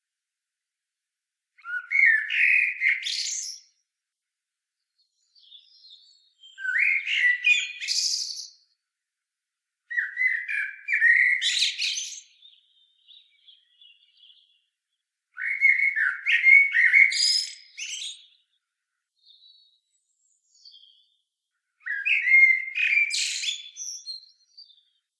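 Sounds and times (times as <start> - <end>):
common blackbird singing: 1.6 - 3.7, 5.0 - 8.7, 9.9 - 14.7, 15.4 - 18.6, 19.2 - 21.2, 21.8 - 25.0.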